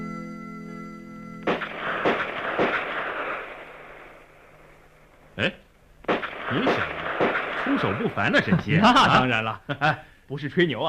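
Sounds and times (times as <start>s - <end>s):
crisp gunshots at a shooting range: 1.4s - 5.3s, 6.0s - 8.8s
laughter: 7.6s - 10.0s
speech: 7.8s - 10.8s.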